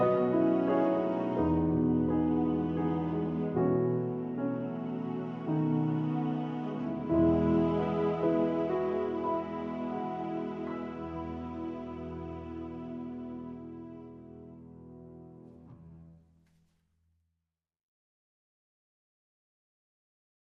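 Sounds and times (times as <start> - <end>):
underscore music with strings: 0.0 - 15.8.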